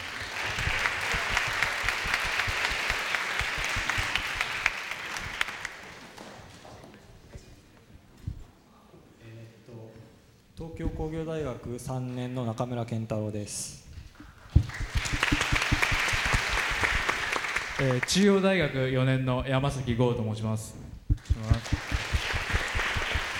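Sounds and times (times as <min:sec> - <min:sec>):
crowd applause: 0:00.0 - 0:05.8, 0:14.6 - 0:18.1, 0:21.2 - 0:23.3
speech: 0:11.0 - 0:13.8, 0:17.8 - 0:20.8.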